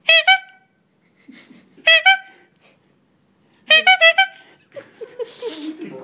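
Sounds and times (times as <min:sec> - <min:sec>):
man honking a horn: 0:00.0 - 0:00.8, 0:01.9 - 0:02.5, 0:03.7 - 0:04.5
laughter: 0:01.2 - 0:01.8, 0:04.6 - 0:06.0.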